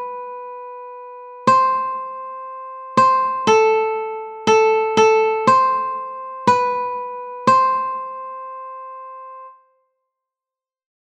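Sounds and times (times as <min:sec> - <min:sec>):
slow ukulele melody: 0:01.5 - 0:08.8.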